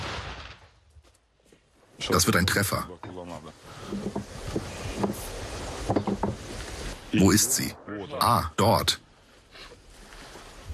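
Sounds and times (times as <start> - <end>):
artillery gun firing: 0.0 - 0.8
speech: 2.0 - 4.6, 7.1 - 9.0.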